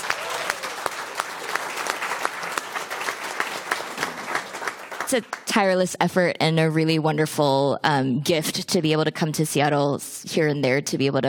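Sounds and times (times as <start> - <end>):
audience applause: 0.0 - 5.5
speech: 5.1 - 11.2.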